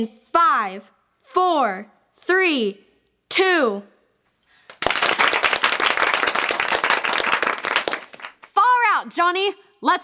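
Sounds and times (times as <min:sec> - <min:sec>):
speech: 0:00.0 - 0:03.9, 0:09.0 - 0:10.0
studio audience applause on cue at a game show taping: 0:04.7 - 0:08.5.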